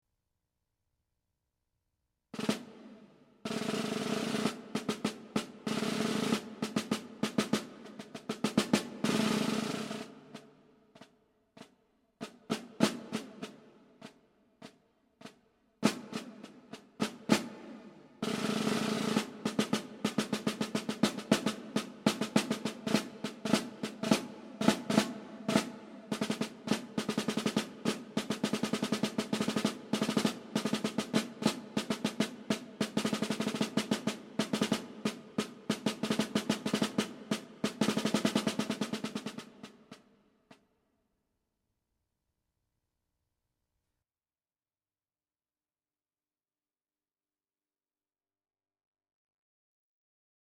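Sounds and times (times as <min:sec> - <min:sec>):
snare drum: 0:02.4 - 0:40.6.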